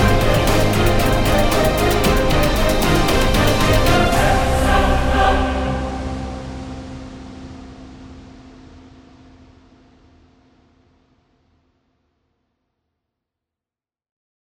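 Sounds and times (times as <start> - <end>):
epic adventure action music: 0.0 - 7.4.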